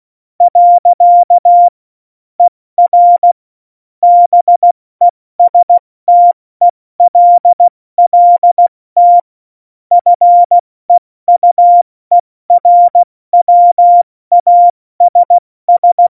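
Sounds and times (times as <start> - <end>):
CW Morse code beeps: 0.4 - 1.7, 2.4 - 3.4, 4.0 - 4.8, 5.4 - 6.4, 7.0 - 9.3, 9.9 - 10.6, 11.3 - 16.1.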